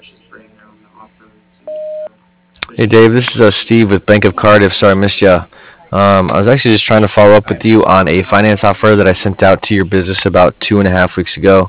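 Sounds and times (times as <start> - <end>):
voicemail beep before leaving a message: 1.7 - 2.1
speech: 2.7 - 11.6.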